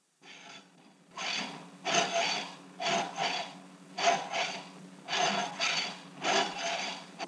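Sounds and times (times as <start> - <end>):
metal scraping: 1.2 - 7.2.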